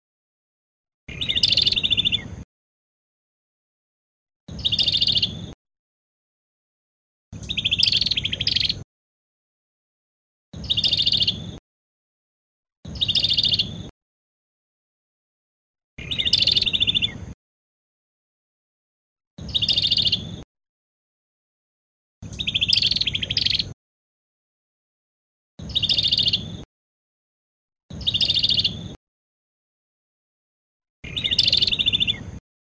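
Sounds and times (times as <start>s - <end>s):
Cambodian prinia bird singing: 1.1s - 2.4s, 4.5s - 5.5s, 7.4s - 8.8s, 10.6s - 11.6s, 12.9s - 13.9s, 16.0s - 17.4s, 19.4s - 20.4s, 22.2s - 23.8s, 25.6s - 26.6s, 27.9s - 28.9s, 31.0s - 32.4s.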